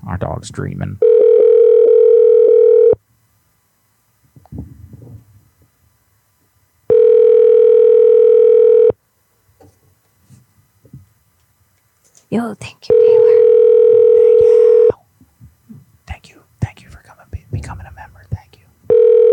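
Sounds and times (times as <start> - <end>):
speech: 0.1 - 1.3
telephone dial tone: 1.0 - 3.0, 6.9 - 8.9, 12.9 - 14.9, 18.9 - 19.3.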